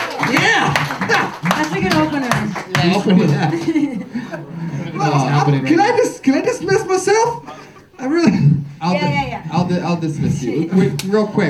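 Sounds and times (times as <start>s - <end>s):
audience round of applause: 0.0s - 6.1s
laughter: 0.0s - 11.4s
speech: 0.9s - 11.4s.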